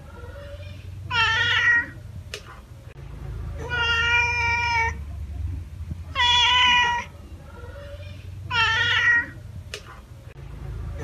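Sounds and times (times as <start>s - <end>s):
cat meowing: 0.1s - 2.0s, 3.6s - 5.0s, 6.1s - 9.4s.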